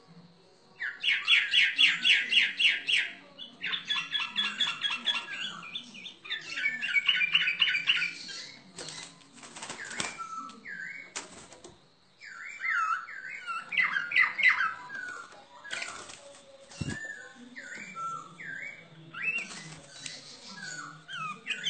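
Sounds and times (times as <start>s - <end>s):
bird song chattering: 0.8s - 21.6s.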